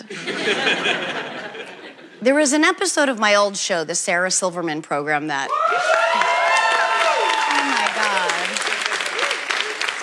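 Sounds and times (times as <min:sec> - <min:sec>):
laughter: 0:00.0 - 0:02.2
speech: 0:00.1 - 0:01.4, 0:02.2 - 0:06.2
audience applause: 0:05.5 - 0:10.0
crowd whooping and cheering: 0:05.5 - 0:10.0.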